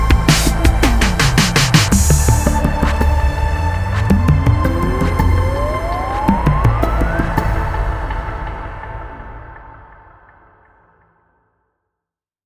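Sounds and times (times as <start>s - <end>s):
JV analog synthesizer: 0.0s - 9.5s.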